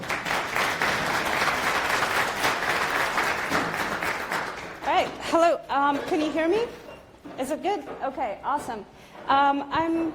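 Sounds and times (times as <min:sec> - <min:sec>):
audience applause: 0:00.0 - 0:04.8
speech: 0:05.0 - 0:10.1.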